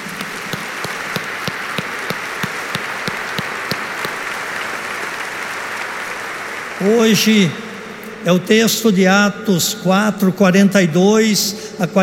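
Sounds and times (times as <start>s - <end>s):
audience applause: 0.0s - 8.0s
speech: 6.8s - 7.6s, 8.2s - 12.0s.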